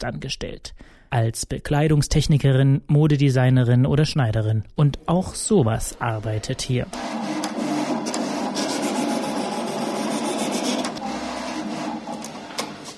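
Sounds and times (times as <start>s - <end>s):
speech: 0.0s - 7.4s
large cutting plotter running: 5.5s - 12.9s.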